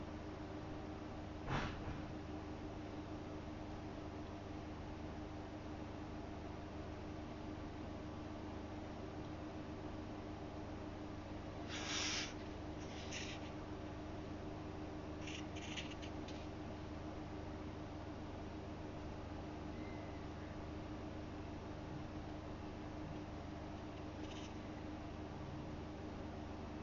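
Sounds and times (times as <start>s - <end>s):
steady low hum: 0.0s - 26.8s
brief bright scratching or rustling: 11.7s - 13.6s, 15.2s - 16.5s.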